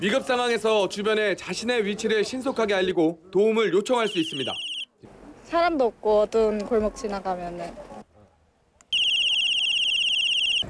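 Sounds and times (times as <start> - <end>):
speech: 0.0 - 4.7, 5.5 - 7.9
electronic safety whistle alarm: 4.1 - 4.9, 8.9 - 10.6.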